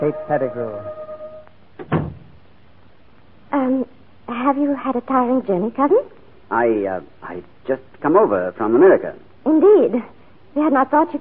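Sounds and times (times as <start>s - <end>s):
speech: 0.0s - 1.0s, 4.5s - 11.1s
wooden door swinging open: 1.8s - 2.3s.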